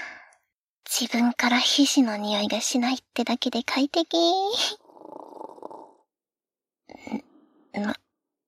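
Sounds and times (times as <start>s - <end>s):
speech: 1.0s - 5.2s, 7.0s - 8.0s
snoring from neighboring booth: 4.8s - 6.1s.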